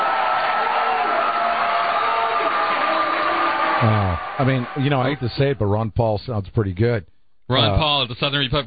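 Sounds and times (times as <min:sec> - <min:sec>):
audience booing at the Southern Republican Leadership Conference: 0:00.0 - 0:05.4
speech: 0:03.8 - 0:08.6.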